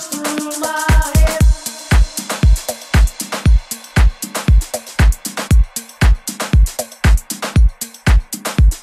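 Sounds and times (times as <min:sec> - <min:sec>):
deep remix music: 0:00.5 - 0:08.8.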